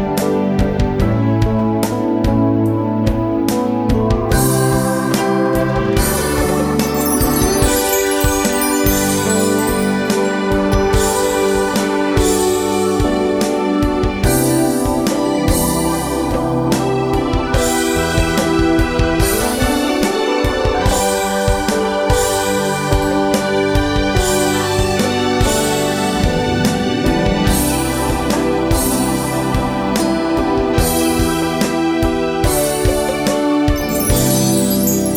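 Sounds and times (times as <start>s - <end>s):
ambient keyboards: 0.0s - 35.1s.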